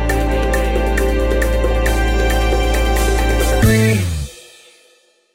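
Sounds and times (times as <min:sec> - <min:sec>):
afro disco funk stinger: 0:00.1 - 0:04.4.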